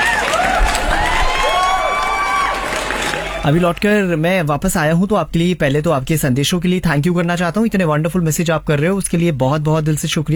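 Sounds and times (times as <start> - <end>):
cheering: 0.0 - 3.8
applause: 0.0 - 3.9
speech: 3.4 - 10.3.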